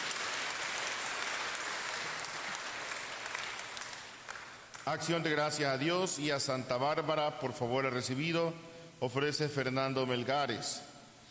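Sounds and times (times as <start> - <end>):
audience applause: 0.0 - 4.8
speech: 4.8 - 10.9.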